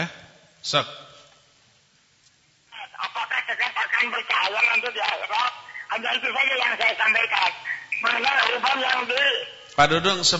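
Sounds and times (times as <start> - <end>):
speech: 0.0 - 1.1, 4.0 - 10.3
caller's radio playing underneath a phone call: 2.7 - 9.8
voices on a tinny narrow-band phone call: 2.7 - 9.8
audio feedback caused by the caller's radio: 4.4 - 9.8.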